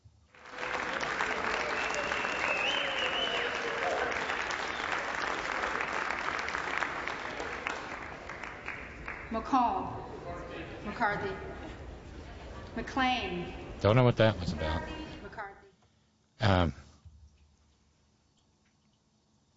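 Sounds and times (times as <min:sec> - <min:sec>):
crowd clapping: 0:00.0 - 0:09.7
speech: 0:09.4 - 0:10.0, 0:10.8 - 0:11.5, 0:12.8 - 0:15.0.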